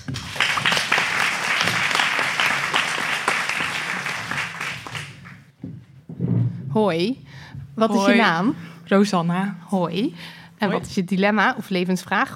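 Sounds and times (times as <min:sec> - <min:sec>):
audience applause: 0:00.0 - 0:05.5
speech: 0:06.8 - 0:12.3.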